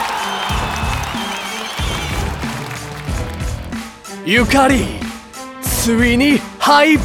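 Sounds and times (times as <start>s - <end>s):
applause: 0.0s - 4.0s
speech: 4.2s - 5.0s, 5.8s - 7.0s.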